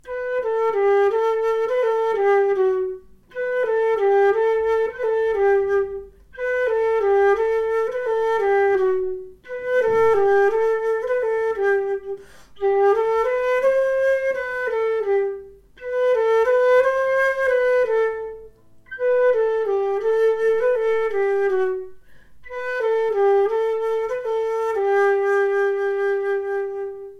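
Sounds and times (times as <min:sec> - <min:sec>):
flute: 0:00.0 - 0:27.1.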